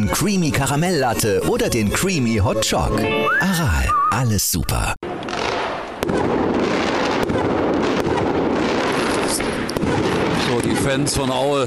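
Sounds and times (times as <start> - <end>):
speech: 0.0 - 5.0, 10.6 - 11.6
fireworks crackling and banging outside: 5.0 - 11.6.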